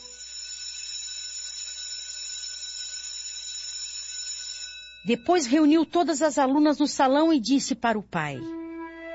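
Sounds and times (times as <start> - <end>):
school bell ringing: 0.0 - 6.6
speech: 5.0 - 8.6.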